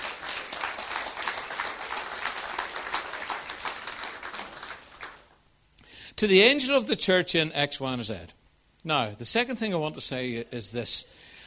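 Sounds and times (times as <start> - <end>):
audience applause: 0.0 - 5.4
speech: 6.2 - 11.3.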